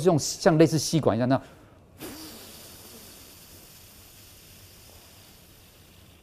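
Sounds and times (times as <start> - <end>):
speech: 0.0 - 2.1
long slow exhalation through pursed lips as a breathing exercise: 1.5 - 6.2.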